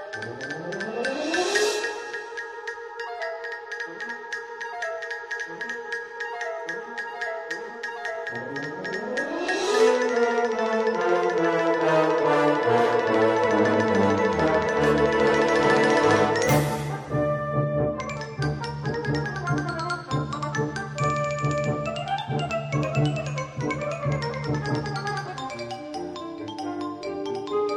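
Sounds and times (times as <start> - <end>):
xylophone: 0.4 - 17.2, 18.0 - 27.7
fanfare band playing: 9.0 - 18.4.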